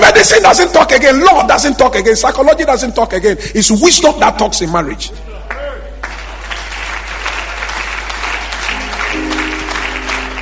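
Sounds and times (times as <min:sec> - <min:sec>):
speech: 0:00.2 - 0:05.3
audience applause: 0:06.0 - 0:10.3.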